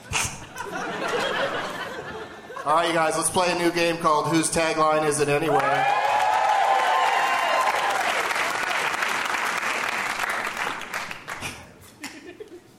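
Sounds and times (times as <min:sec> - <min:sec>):
laughter: 0:00.0 - 0:02.8
speech: 0:02.6 - 0:06.0
audience cheering: 0:05.4 - 0:10.9
audience applause: 0:05.5 - 0:11.6.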